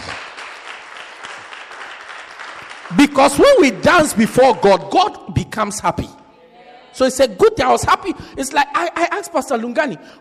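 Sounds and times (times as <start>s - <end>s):
crowd applauding: 0.0s - 4.7s
speech: 2.9s - 6.2s, 7.0s - 10.1s.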